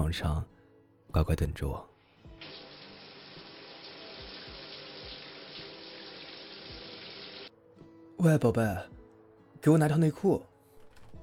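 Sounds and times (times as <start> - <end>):
speech: 0.1 - 1.9, 8.2 - 9.0, 9.6 - 10.5
shower water running: 2.4 - 7.5.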